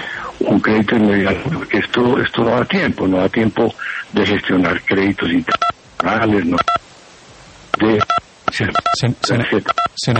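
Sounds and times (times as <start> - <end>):
speech: 0.5 - 6.8, 7.8 - 10.1
mobile phone keypad beeps during a call: 5.5 - 5.8, 6.6 - 6.8, 7.8 - 9.9.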